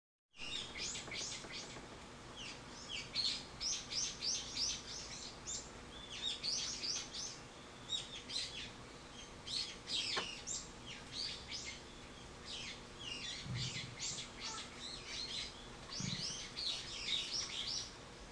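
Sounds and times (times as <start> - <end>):
bird chirping: 0.4 - 18.0
soft low thumps: 13.4 - 14.0.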